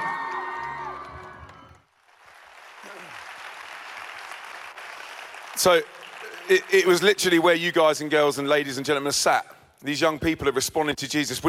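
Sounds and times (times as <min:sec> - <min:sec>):
audience applause and cheering: 0:00.0 - 0:07.4
speech: 0:05.6 - 0:11.4.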